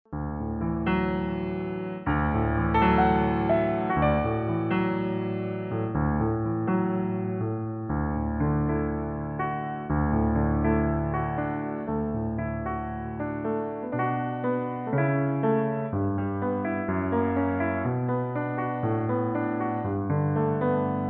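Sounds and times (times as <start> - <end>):
piano: 0.0 - 21.0.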